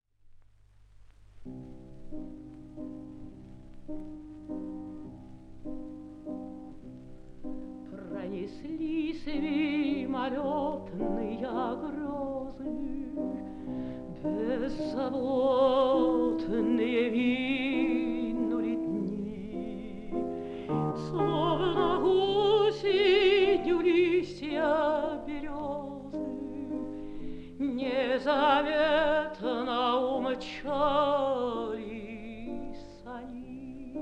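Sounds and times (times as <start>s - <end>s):
fortepiano: 0.3s - 34.0s
mezzo-soprano singing: 6.2s - 34.0s.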